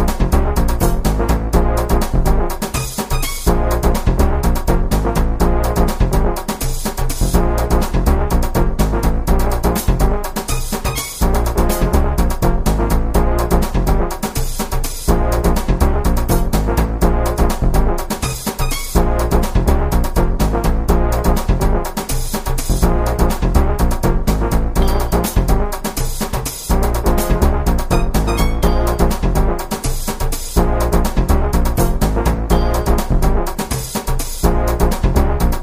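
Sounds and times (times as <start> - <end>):
virtual brass in latin funk Indian fusion: 0.0 - 35.6
virtual sitar in latin funk Indian fusion: 27.9 - 29.1.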